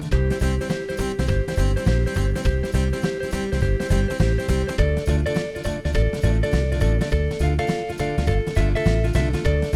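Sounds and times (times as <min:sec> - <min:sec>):
song accompaniment with two verses: 0:00.1 - 0:09.7.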